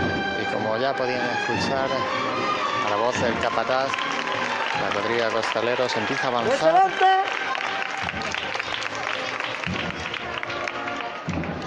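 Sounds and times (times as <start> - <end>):
speech: 0.5 - 4.2, 4.8 - 7.5
sustained applause from a large crowd: 2.8 - 11.6.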